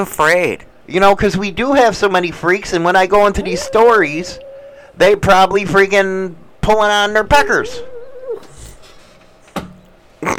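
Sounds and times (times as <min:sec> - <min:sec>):
speech: 0:00.0 - 0:04.4, 0:05.0 - 0:07.9
old dog whimpering while dreaming: 0:03.1 - 0:05.5, 0:07.3 - 0:08.8.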